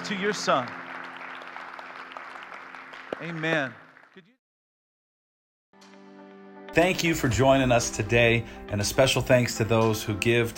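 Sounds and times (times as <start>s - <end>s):
audience applause: 0.0s - 4.3s
speech: 0.1s - 0.8s, 3.2s - 4.3s, 6.8s - 10.5s.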